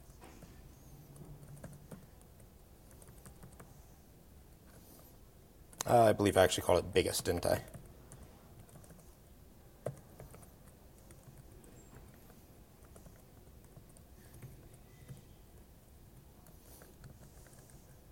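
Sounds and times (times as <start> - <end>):
typing on a computer keyboard: 0.1 - 3.9, 7.5 - 18.0
speech: 5.9 - 7.8.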